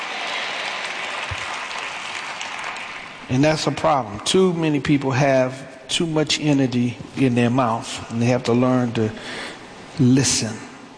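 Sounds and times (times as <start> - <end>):
audience clapping: 0.0 - 3.4
speech: 3.3 - 10.7.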